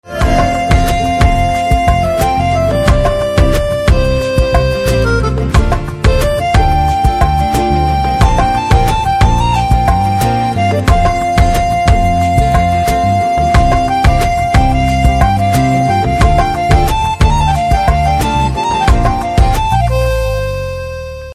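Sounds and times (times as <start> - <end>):
background music ringtone: 0.0 - 21.3.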